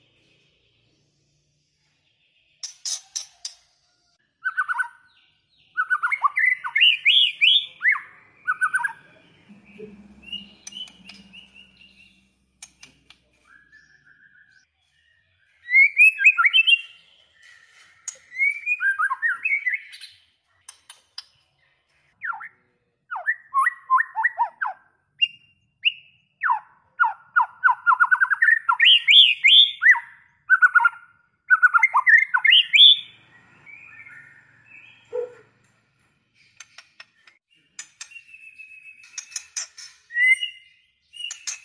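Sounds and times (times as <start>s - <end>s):
White-rumped shama singing: 5.7s - 9.0s, 13.4s - 14.6s, 15.5s - 17.0s, 18.0s - 20.1s, 23.1s - 35.4s, 38.0s - 41.6s
low hum: 9.1s - 12.8s.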